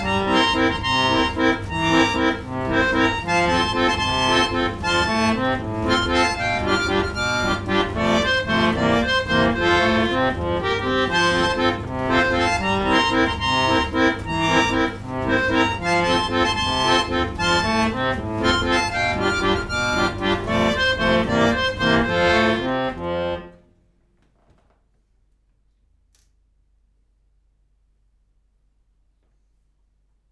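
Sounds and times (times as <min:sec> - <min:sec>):
65-note aeolian barrel organ with accordion-playing doll from France: 0:00.0 - 0:23.7.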